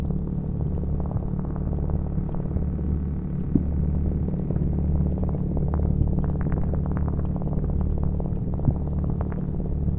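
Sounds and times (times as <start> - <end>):
ambience inside a volcano: 0.0 - 9.9.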